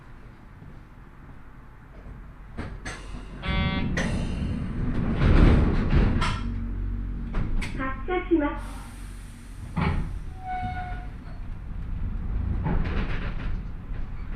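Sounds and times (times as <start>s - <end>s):
train with nose-suspended traction motors rumbling: 0.0s - 14.3s
wheels and track clanking and squealing: 2.0s - 14.3s
tonal whine: 2.9s - 12.8s.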